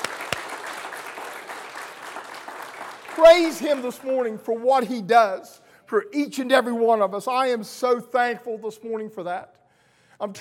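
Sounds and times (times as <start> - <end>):
audience clapping hands: 0.0 - 4.4
speech: 3.2 - 9.6, 10.2 - 10.3.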